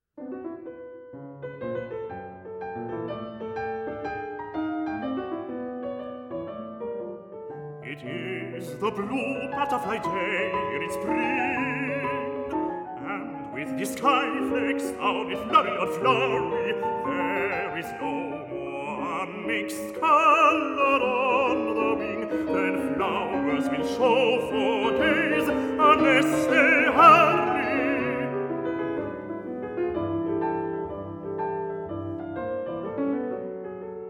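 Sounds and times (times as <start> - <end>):
piano: 0.0 - 34.0
baritone singing: 7.8 - 28.5.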